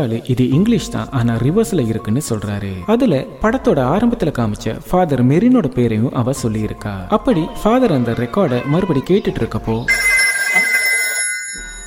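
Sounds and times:
speech: 0.0 - 10.1
telephone ringing: 9.9 - 11.8.

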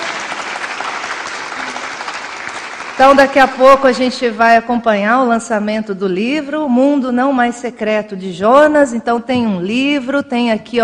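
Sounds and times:
audience applause: 0.0 - 3.5
speech: 3.0 - 10.8.

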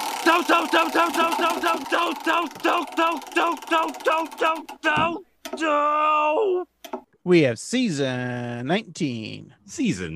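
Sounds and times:
Wheel of Random prize wheel spin ticking: 0.0 - 5.6
speech: 0.3 - 10.1.

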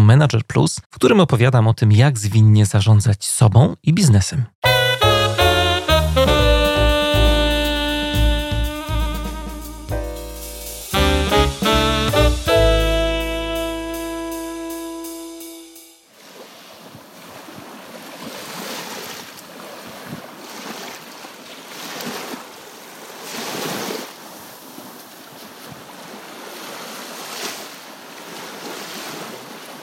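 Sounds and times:
speech: 0.1 - 4.7
sustained musical tones: 4.6 - 16.0.

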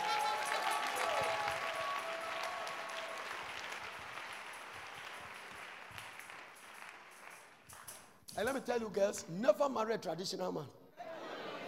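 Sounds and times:
whistles and cheers: 0.0 - 3.9
crowd applause: 0.0 - 7.7
speech: 8.4 - 10.8
laughter: 11.0 - 11.6.

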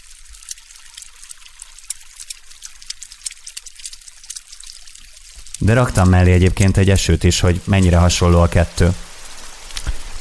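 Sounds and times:
egg frying in oil sound effect: 0.0 - 10.1
speech: 5.6 - 9.0.

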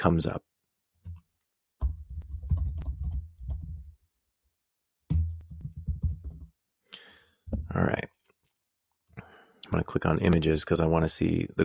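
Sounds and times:
speech: 0.0 - 0.5, 7.8 - 8.0, 9.7 - 11.6
typing a Google search on a computer keyboard: 1.8 - 3.9.

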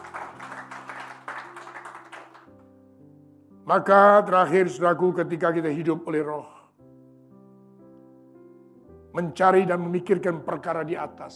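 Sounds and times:
audience clapping hands: 0.0 - 2.7
speech: 3.7 - 6.6, 9.2 - 11.3.

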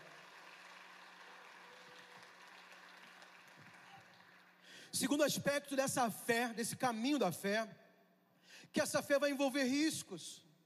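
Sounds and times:
audience applauding: 0.0 - 4.8
speech: 4.9 - 7.8, 8.6 - 10.5.

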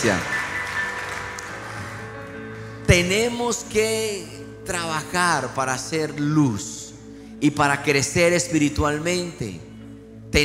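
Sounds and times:
speech: 0.0 - 0.3, 2.9 - 6.8, 7.4 - 9.7
church audience applauding: 0.0 - 3.1.

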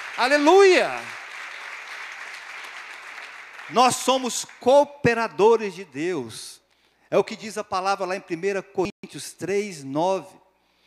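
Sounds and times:
audience applauding: 0.0 - 4.8
speech: 0.2 - 1.2, 3.7 - 10.4.

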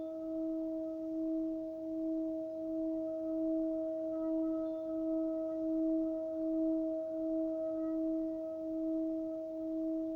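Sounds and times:
Tibetan bell humming: 0.0 - 10.1.

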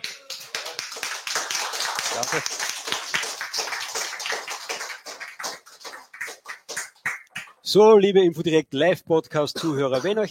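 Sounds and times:
audience applauding: 0.0 - 7.6
speech: 2.2 - 2.7, 7.7 - 10.3.

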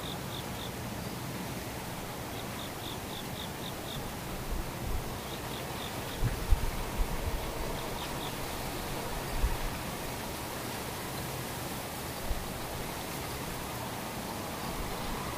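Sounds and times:
high rapid insect chirping: 0.0 - 1.2, 2.0 - 6.5, 7.4 - 8.9
steady soft hiss: 0.0 - 15.3.

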